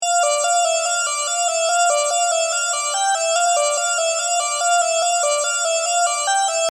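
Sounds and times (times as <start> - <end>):
lead melody: 0.1 - 6.7.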